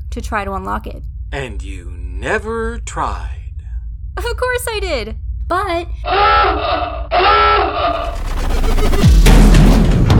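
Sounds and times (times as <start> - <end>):
speech: 0.2 - 3.4, 4.2 - 9.2
spaceship crashing into another ship: 6.1 - 10.1.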